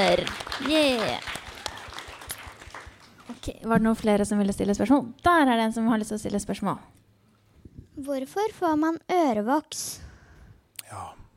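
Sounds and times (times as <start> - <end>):
speech: 0.0 - 1.3, 3.3 - 7.0, 8.0 - 10.0, 10.9 - 11.2
audience applause: 0.0 - 3.4.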